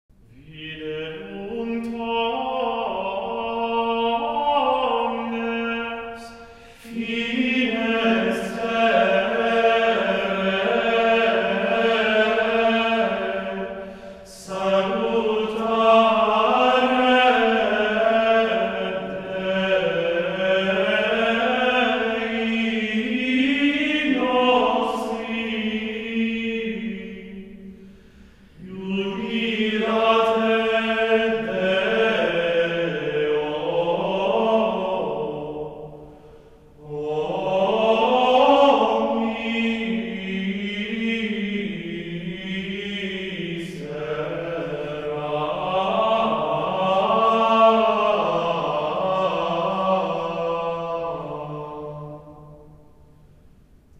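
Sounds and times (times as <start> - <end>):
Gregorian chant of the Mass Gradual: 0.2 - 53.0.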